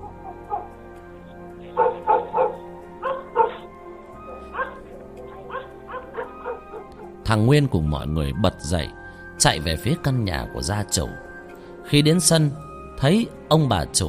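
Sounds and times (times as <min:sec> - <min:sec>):
dog barking fiercely: 0:00.0 - 0:00.7, 0:01.8 - 0:03.7, 0:04.3 - 0:07.2
injured dog yelping in pain: 0:01.8 - 0:03.7, 0:04.4 - 0:07.2
speech: 0:07.3 - 0:11.3, 0:11.9 - 0:14.0.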